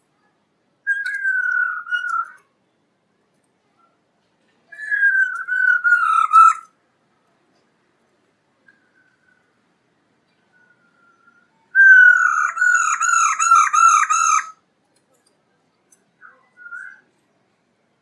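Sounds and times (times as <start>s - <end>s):
black-throated laughingthrush song of whistles and a harsh burst: 0.9s - 2.4s, 4.7s - 6.7s, 10.5s - 14.5s.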